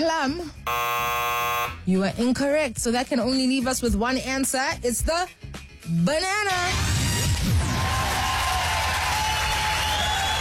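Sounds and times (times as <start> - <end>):
speech: 0.0 - 1.2, 1.9 - 7.0
crowd applauding and cheering: 7.2 - 10.3.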